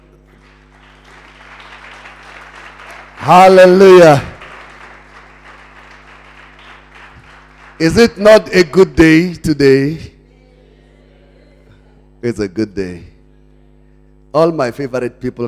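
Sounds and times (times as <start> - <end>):
audience clapping: 0.0 - 8.6
speech: 3.2 - 4.3, 7.8 - 10.1, 12.2 - 13.1, 14.3 - 15.4.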